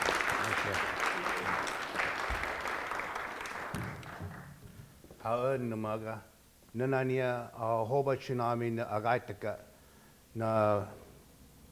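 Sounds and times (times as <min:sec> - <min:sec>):
audience applause at MIT welcoming a guest speaker: 0:00.0 - 0:04.6
speech: 0:05.2 - 0:09.7, 0:10.3 - 0:11.0.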